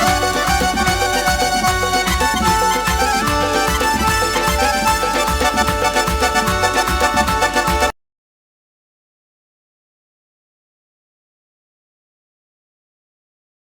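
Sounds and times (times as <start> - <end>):
Azerbaijani instrumental music: 0.0 - 8.0.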